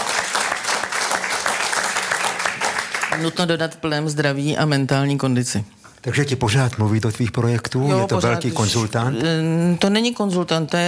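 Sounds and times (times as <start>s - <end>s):
audience applause: 0.0s - 3.4s
speech: 3.2s - 10.8s.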